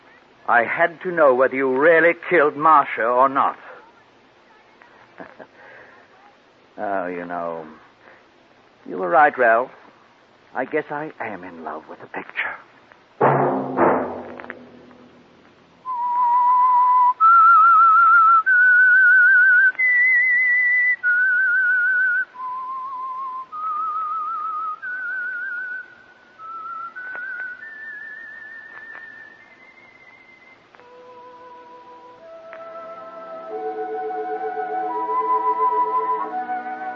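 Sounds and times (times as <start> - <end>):
speech: 0.5 - 3.6, 5.2 - 5.6, 6.8 - 7.8, 8.8 - 9.8, 10.5 - 12.7
whistled theme melody: 15.9 - 36.9.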